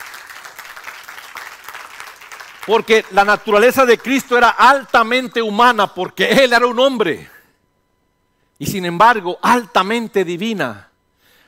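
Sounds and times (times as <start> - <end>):
audience applauding: 0.0 - 4.8
speech: 2.6 - 7.3, 8.6 - 10.9.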